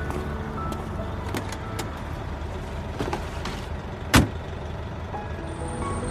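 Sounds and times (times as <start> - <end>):
idling taxi engine hum: 0.0 - 6.0
taxi rear trunk opening clunk: 3.0 - 4.4.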